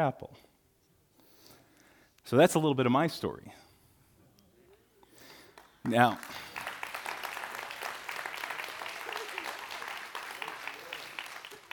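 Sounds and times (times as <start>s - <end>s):
speech: 0.0s - 0.5s, 2.3s - 3.6s, 5.8s - 6.5s
church congregation applause during a sermon: 5.8s - 11.7s.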